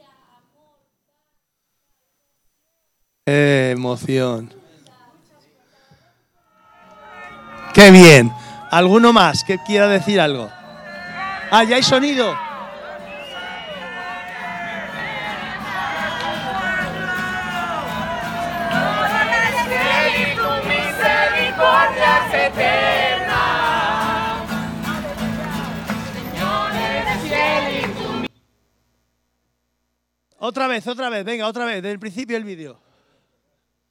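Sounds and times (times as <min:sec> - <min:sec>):
speech: 0:03.3 - 0:04.6, 0:07.7 - 0:10.6, 0:11.5 - 0:12.4, 0:30.4 - 0:32.9
crowd shouting and cheering in video: 0:06.5 - 0:28.3.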